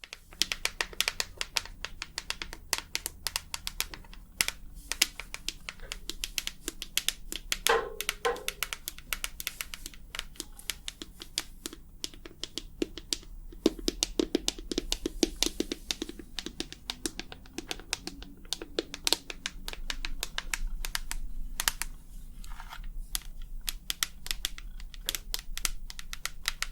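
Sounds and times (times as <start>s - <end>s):
tapping clicks: 0.0s - 21.9s, 23.2s - 26.6s
low steady hum: 1.4s - 26.4s.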